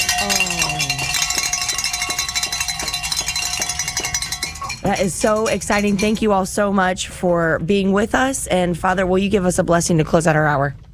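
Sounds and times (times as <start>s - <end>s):
bell ringing: 0.0s - 6.4s
speech: 4.8s - 10.9s.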